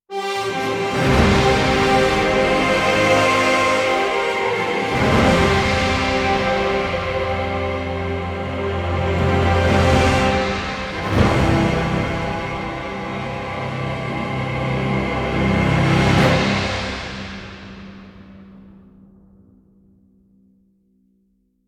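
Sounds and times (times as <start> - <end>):
winning music: 0.1 - 16.4.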